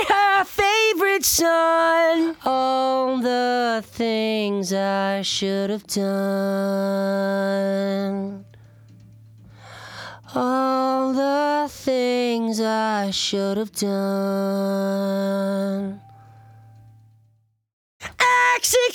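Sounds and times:
lead vocals: 0.0s - 8.8s, 9.5s - 16.4s, 18.0s - 18.9s.

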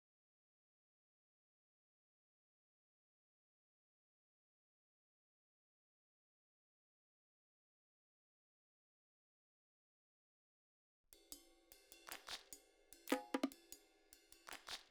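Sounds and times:
percussion: 11.1s - 14.9s.

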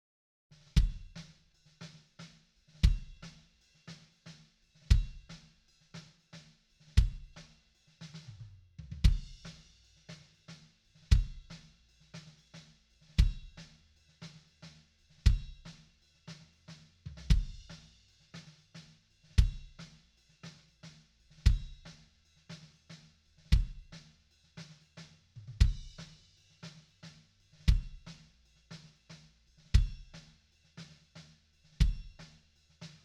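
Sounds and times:
kick drum: 0.8s - 1.3s, 2.8s - 3.3s, 4.9s - 5.3s, 7.0s - 7.4s, 9.0s - 9.4s, 11.1s - 11.5s, 13.2s - 13.6s, 15.3s - 15.7s, 17.3s - 17.7s, 19.4s - 19.8s, 21.4s - 21.8s, 23.5s - 23.9s, 25.6s - 26.1s, 27.7s - 28.1s, 29.8s - 30.2s, 31.8s - 32.3s.

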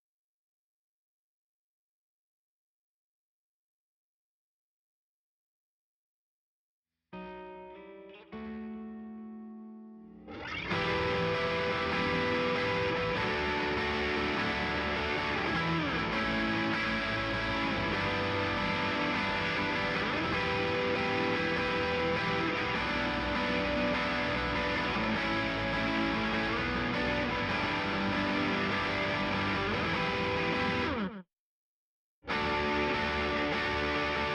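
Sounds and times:
guitars: 7.2s - 31.2s, 32.3s - 34.3s.

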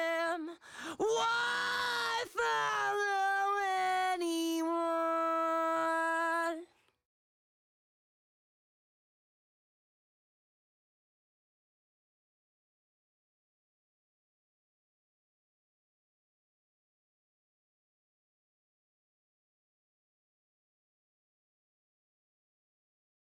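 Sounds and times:
main vocals: 0.0s - 6.8s.

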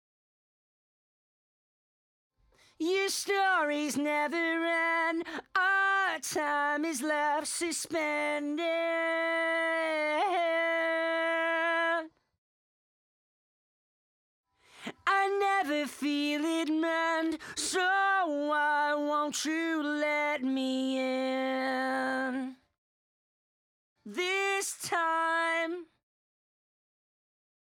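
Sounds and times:
main vocals: 2.8s - 12.2s, 14.8s - 22.6s, 24.1s - 25.9s.

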